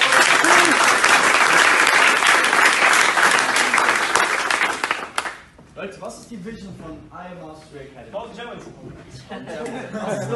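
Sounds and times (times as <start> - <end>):
audience applause: 0.0 - 5.5
speech: 6.3 - 10.3
laughter: 9.1 - 10.3.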